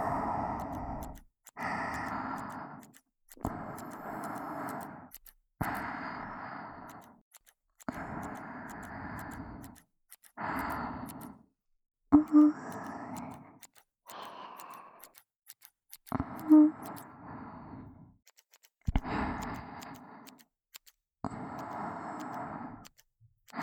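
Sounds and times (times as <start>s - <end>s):
ear hair being trimmed in the right ear: 0.0s - 11.4s, 12.2s - 17.1s, 18.3s - 23.6s.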